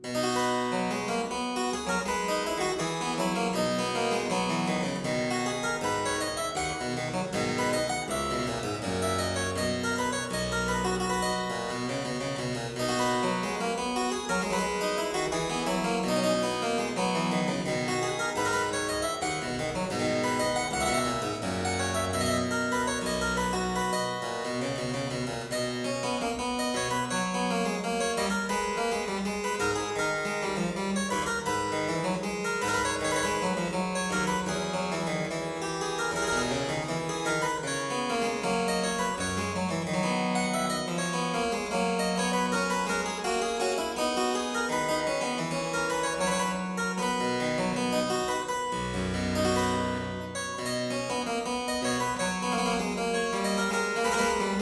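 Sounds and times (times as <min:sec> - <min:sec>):
harpsichord playing a variation: 0:00.0 - 0:54.6.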